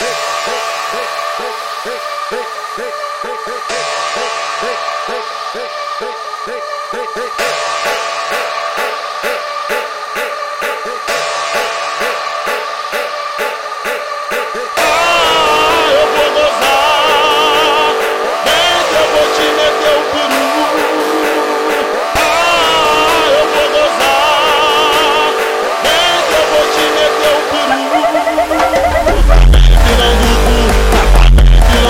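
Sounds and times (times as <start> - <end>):
phonk music: 0.0 - 31.8.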